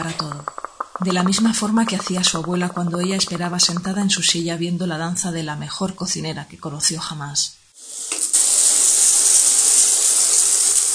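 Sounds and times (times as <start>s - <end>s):
speech: 1.0s - 7.6s
shower water spraying: 7.8s - 10.9s.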